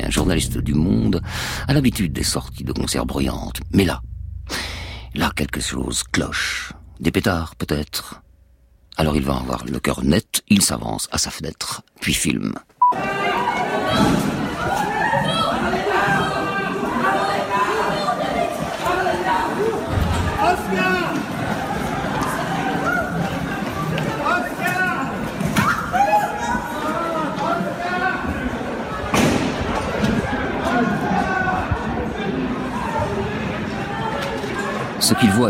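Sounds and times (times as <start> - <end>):
speech: 0.2 - 4.6, 5.2 - 8.2, 9.0 - 13.2, 13.9 - 14.9, 35.1 - 35.4
crowd running through a street shouting and crying: 12.9 - 35.4.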